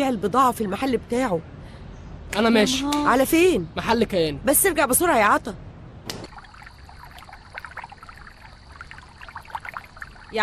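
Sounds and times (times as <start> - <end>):
speech: 0.0 - 1.6, 2.3 - 5.7
water pouring into a small basin: 6.3 - 10.4.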